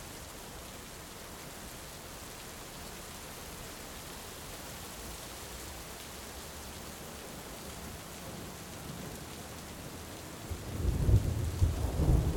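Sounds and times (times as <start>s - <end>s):
steady rain: 0.0s - 12.3s
deep thunder rumbling: 10.6s - 12.3s.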